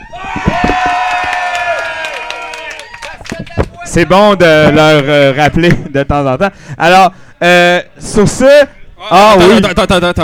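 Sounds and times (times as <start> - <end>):
live audience at a show cheering and whooping: 0.0 - 4.1
speech: 3.9 - 10.2.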